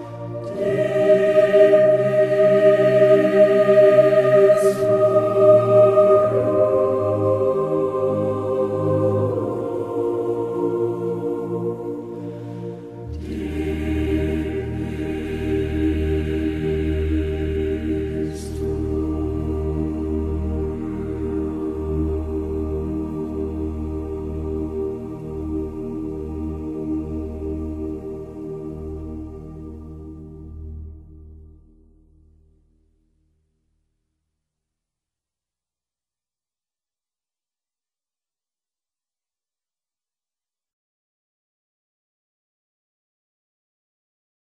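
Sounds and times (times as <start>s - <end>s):
deep peaceful choral singing: 0.0s - 30.8s.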